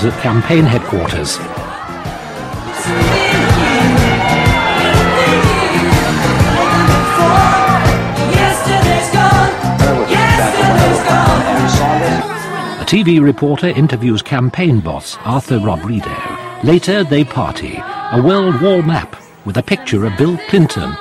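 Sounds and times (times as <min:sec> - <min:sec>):
speech: 0:00.0 - 0:01.8, 0:02.9 - 0:03.2, 0:12.9 - 0:21.0
crowd cheering at campaign headquarters: 0:00.0 - 0:12.6.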